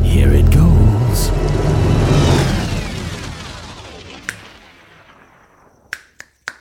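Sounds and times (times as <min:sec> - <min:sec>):
rumbling burst: 0:00.0 - 0:05.9
finger snaps meant to start a fire: 0:05.9 - 0:06.5.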